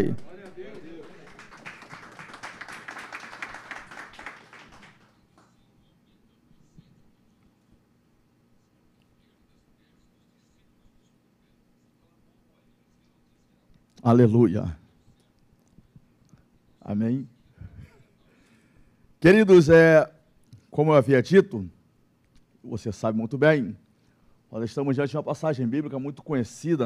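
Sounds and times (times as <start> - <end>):
speech: 0.0 - 0.3, 14.0 - 14.8, 16.9 - 17.4, 19.2 - 21.8, 22.6 - 23.8, 24.5 - 26.8
audience applauding: 0.0 - 5.5.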